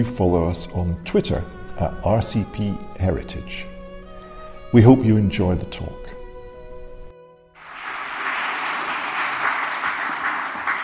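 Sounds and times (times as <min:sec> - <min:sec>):
speech: 0:00.0 - 0:03.7, 0:04.7 - 0:06.2
audience applause: 0:07.6 - 0:10.8.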